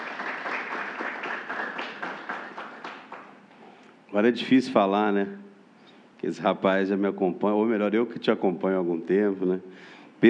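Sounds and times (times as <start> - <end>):
applause: 0.0 - 3.4
speech: 4.1 - 5.4, 6.2 - 10.2.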